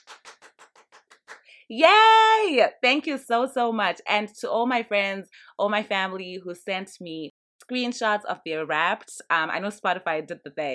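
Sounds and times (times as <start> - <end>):
hand clapping: 0.0 - 1.5
speech: 1.7 - 10.7.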